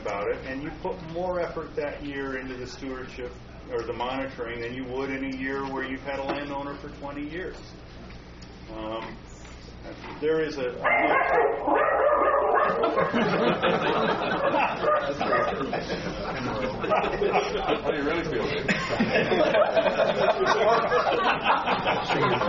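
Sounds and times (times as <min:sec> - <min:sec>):
speech: 0:00.3 - 0:07.9, 0:08.7 - 0:22.4
dog barking: 0:10.8 - 0:13.2, 0:14.8 - 0:15.6
laughter: 0:12.6 - 0:22.4.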